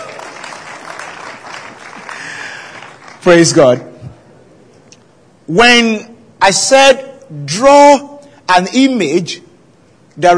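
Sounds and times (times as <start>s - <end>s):
room full of people applauding: 0.0s - 3.8s
speech: 3.2s - 3.9s, 5.5s - 9.4s, 10.2s - 10.3s.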